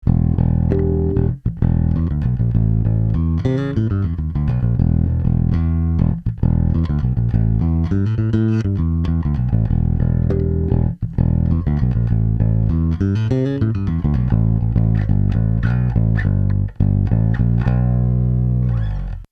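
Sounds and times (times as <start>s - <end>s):
bass driven through Rupert Neve Designs Portico 5017: 0.0s - 19.3s.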